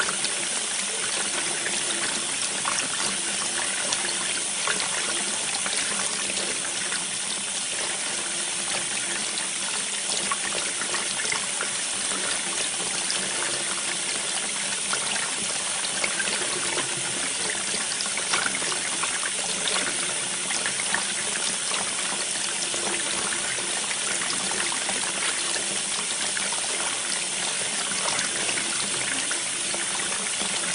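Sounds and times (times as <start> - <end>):
water: 0.0 - 30.7.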